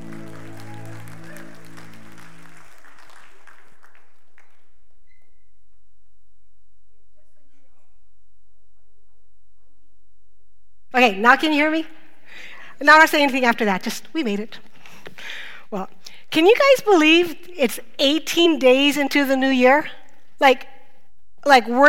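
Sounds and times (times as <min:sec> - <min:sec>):
audience applauding: 0:00.0 - 0:05.0
speech: 0:11.0 - 0:12.0, 0:12.8 - 0:20.7, 0:21.4 - 0:21.8.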